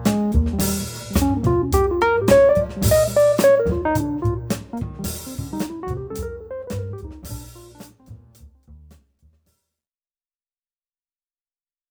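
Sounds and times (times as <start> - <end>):
jazz trio playing: 0.0 - 8.9.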